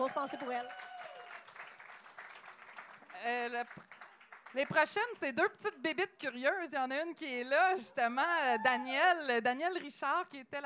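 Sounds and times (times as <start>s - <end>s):
speech: 0.0s - 0.9s, 3.2s - 10.6s
audience applause: 0.0s - 4.6s.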